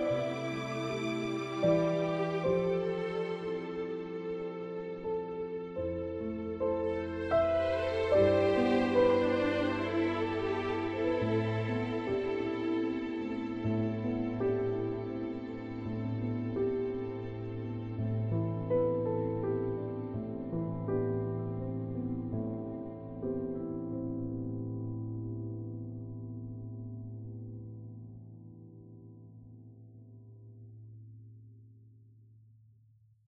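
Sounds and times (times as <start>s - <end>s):
strings: 0.0s - 26.1s.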